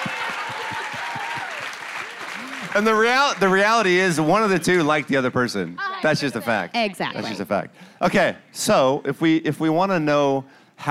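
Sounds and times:
audience applause: 0:00.0 - 0:05.3
speech: 0:02.8 - 0:10.9.

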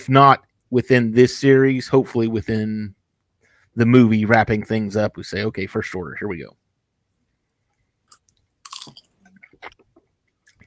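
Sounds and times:
speech: 0:00.0 - 0:03.0, 0:03.8 - 0:06.6
person chewing kettle corn: 0:08.1 - 0:10.6.

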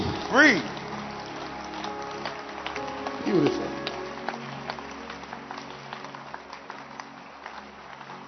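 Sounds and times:
audience clapping hands: 0:00.0 - 0:08.2
speech: 0:00.3 - 0:00.8, 0:03.3 - 0:03.8.

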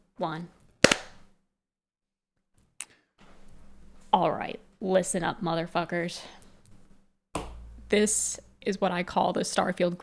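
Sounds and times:
speech: 0:00.2 - 0:00.6, 0:04.1 - 0:06.4, 0:07.9 - 0:10.0
hand clap for audio sync: 0:00.8 - 0:01.2, 0:07.4 - 0:07.6.

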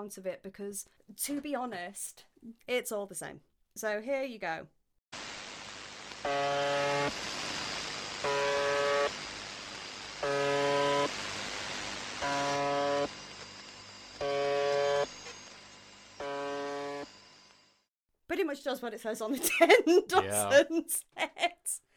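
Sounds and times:
speech: 0:00.0 - 0:05.2, 0:06.2 - 0:07.4, 0:18.5 - 0:21.9
constant hiss: 0:05.2 - 0:13.2
number station buzzer tone: 0:05.2 - 0:17.9.

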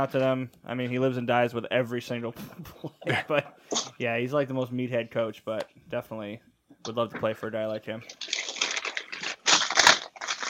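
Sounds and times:
speech: 0:00.0 - 0:08.4
grocery bags rustling and crinkling: 0:08.1 - 0:10.4.

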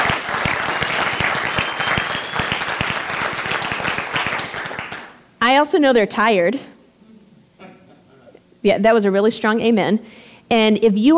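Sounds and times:
round of applause: 0:00.0 - 0:05.2
speech: 0:05.6 - 0:06.7, 0:08.6 - 0:11.1.

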